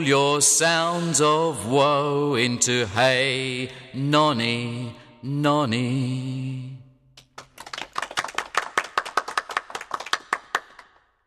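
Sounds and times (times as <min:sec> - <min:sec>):
speech: 0:00.0 - 0:06.7
applause after a song: 0:07.2 - 0:11.2.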